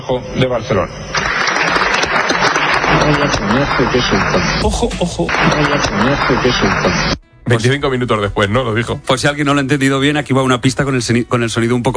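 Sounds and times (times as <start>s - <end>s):
speech: 0.1s - 2.3s, 3.0s - 11.9s
large crowd applauding in a parliament chamber after a speech: 1.1s - 4.7s, 5.3s - 7.2s.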